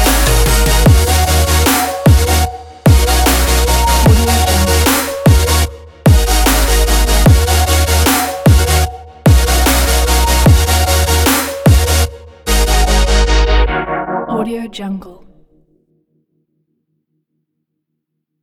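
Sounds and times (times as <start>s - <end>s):
future bass music: 0.0s - 14.5s.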